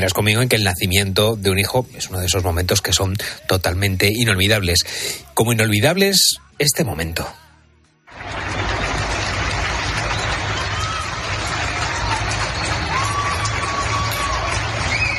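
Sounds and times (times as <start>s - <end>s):
speech: 0.0s - 7.4s
crowd applauding from balconies: 8.1s - 15.1s
scattered cheers: 8.1s - 15.1s
high whistles: 9.8s - 11.4s, 12.1s - 15.1s.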